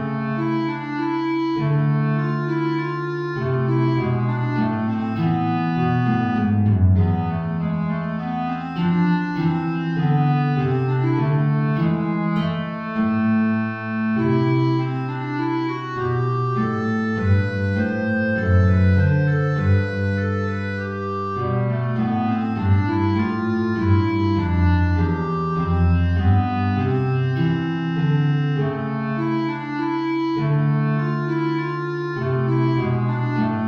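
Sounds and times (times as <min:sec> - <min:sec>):
B-flat clarinet playing a minuet: 0:00.0 - 0:33.6
guitar playing a minuet: 0:02.5 - 0:28.9.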